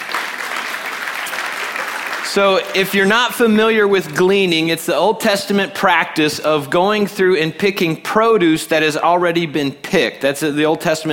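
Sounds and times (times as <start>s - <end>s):
audience clapping: 0.0s - 4.2s
speech: 2.3s - 11.1s.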